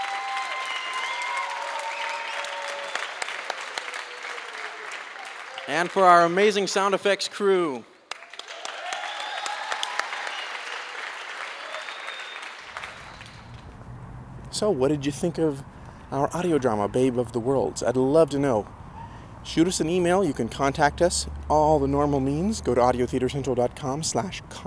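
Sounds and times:
audience applause: 0.0 - 6.7, 8.1 - 13.7
speech: 5.7 - 7.9, 14.6 - 18.8, 19.4 - 24.6.

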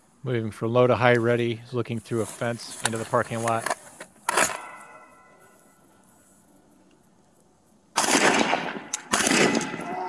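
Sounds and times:
speech: 0.2 - 3.8
police rifle fire aimed at an armed suspect: 7.9 - 10.0.

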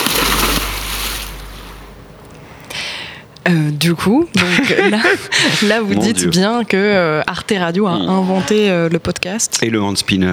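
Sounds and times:
water sloshing and churning as someone goes in for a swim: 0.0 - 2.6
speech: 3.4 - 10.3
laughter: 4.3 - 6.2.

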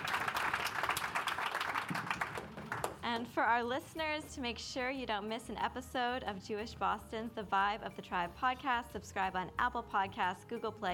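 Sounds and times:
audience round of applause: 0.0 - 3.0
speech: 3.2 - 10.9.

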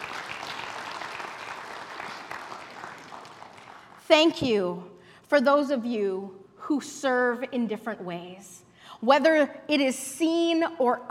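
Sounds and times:
audience applause: 0.0 - 4.0
speech: 4.1 - 11.1.

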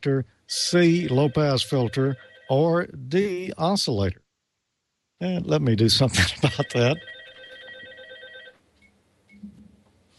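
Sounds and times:
speech: 0.0 - 4.2, 5.2 - 7.2
telephone ringing: 0.8 - 2.7, 6.4 - 8.6.

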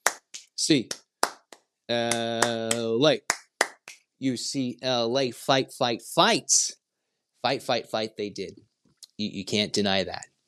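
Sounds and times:
sharp hand claps: 0.0 - 4.0
speech: 0.6 - 1.0, 1.9 - 3.4, 4.2 - 6.8, 7.4 - 10.3.

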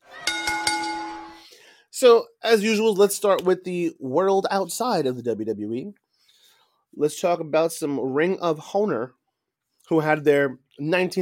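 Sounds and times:
bell ringing: 0.2 - 1.4
speech: 2.0 - 6.0, 6.9 - 9.2, 9.9 - 11.2.

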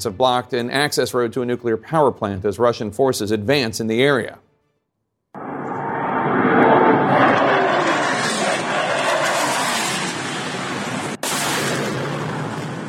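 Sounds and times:
speech: 0.0 - 4.5
fighter jet roaring past: 5.4 - 12.8.

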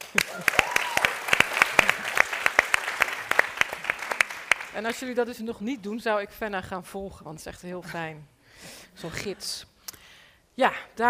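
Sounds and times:
audience applause: 0.0 - 4.9
speech: 4.8 - 9.7, 10.6 - 11.0.

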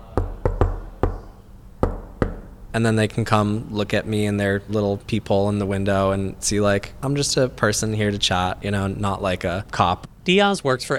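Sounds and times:
gentle knock on a door: 1.8 - 2.5
speech: 2.8 - 10.9.

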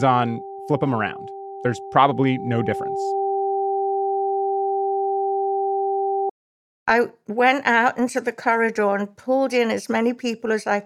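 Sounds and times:
speech: 0.0 - 3.2, 6.9 - 10.8
alternating high and low electronic sine tones: 0.0 - 6.3.

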